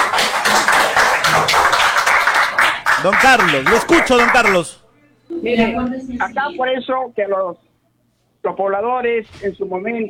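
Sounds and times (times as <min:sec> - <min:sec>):
council members applauding: 0:00.0 - 0:04.8
speech: 0:03.0 - 0:07.6, 0:08.4 - 0:10.0.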